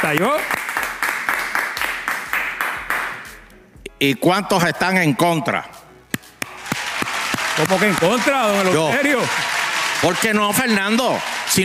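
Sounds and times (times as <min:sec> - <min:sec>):
speech: 0:00.0 - 0:00.6, 0:04.0 - 0:05.7, 0:07.6 - 0:11.6
applause: 0:00.0 - 0:03.3, 0:06.4 - 0:11.6.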